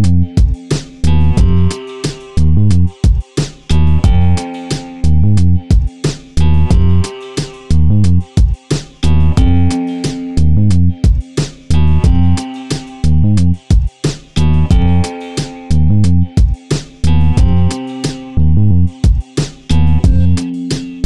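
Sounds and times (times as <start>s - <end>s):
boom bap hip hop beat: 0.0s - 21.0s
clavichord: 0.0s - 21.0s.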